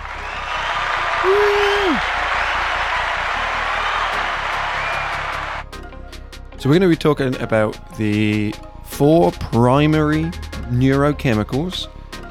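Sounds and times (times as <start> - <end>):
crowd cheering: 0.0 - 5.7
speech: 1.2 - 1.6, 6.6 - 12.0.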